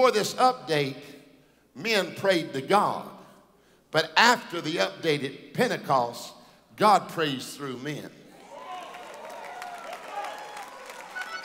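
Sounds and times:
speech: 0.0s - 1.2s, 1.8s - 3.2s, 3.9s - 8.2s
audience clapping: 8.4s - 11.4s.

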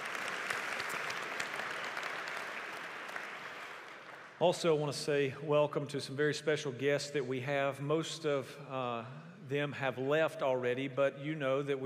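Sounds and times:
church audience applause: 0.0s - 4.4s
speech: 4.4s - 11.8s.

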